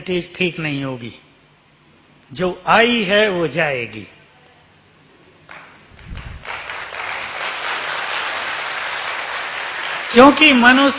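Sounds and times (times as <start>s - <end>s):
speech: 0.0s - 1.2s, 2.3s - 4.2s, 10.1s - 10.9s
audience clapping: 5.5s - 10.9s.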